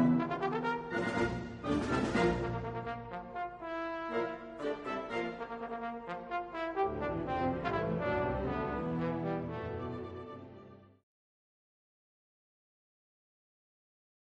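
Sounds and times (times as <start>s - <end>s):
trombone concerto: 0.0s - 10.2s.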